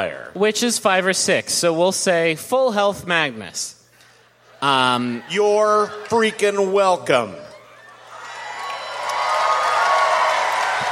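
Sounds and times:
speech: 0.0s - 3.8s, 4.6s - 7.5s
crowd applause and cheering: 4.6s - 10.9s.

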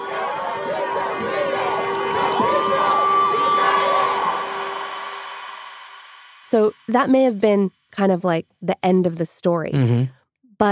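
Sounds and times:
street crowd cheering and whooping: 0.0s - 6.3s
speech: 6.5s - 10.7s.

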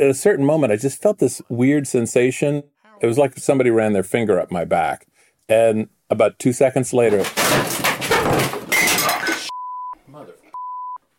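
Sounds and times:
speech: 0.0s - 8.6s
old wooden chair collapsing: 7.2s - 8.7s
person crashing to floor: 7.2s - 9.5s.

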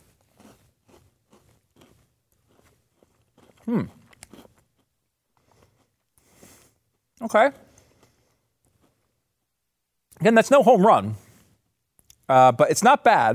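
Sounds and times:
quieter cookie crunches: 0.0s - 6.1s
crisp bite into a Peanutter cookie: 0.0s - 6.2s
speech: 3.7s - 4.0s, 7.2s - 7.7s, 10.2s - 11.2s, 12.3s - 13.3s.

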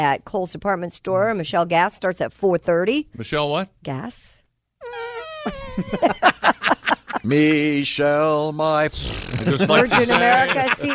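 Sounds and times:
speech: 0.0s - 4.4s, 5.4s - 10.9s
two people making fart noises with mouths: 4.8s - 6.2s, 8.9s - 9.6s
laughter: 5.5s - 7.8s, 9.1s - 10.9s.

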